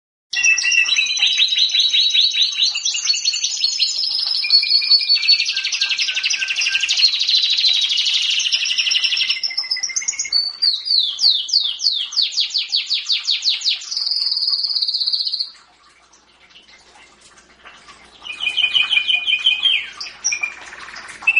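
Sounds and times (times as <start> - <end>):
champion canary singing with rattling trills and whistled rolls: 0.3 - 17.2, 17.8 - 21.3.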